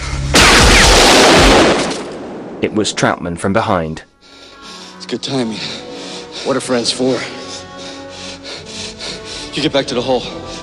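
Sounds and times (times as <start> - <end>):
gunshot in a cave: 0.4 - 3.0
speech: 2.6 - 4.1, 5.1 - 5.8, 6.4 - 7.4, 9.6 - 10.4.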